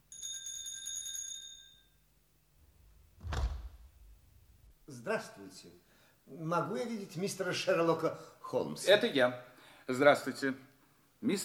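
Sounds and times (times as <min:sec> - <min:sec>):
doorbell ringing: 0:00.0 - 0:02.0
door opening: 0:03.1 - 0:04.1
speech: 0:05.0 - 0:11.4.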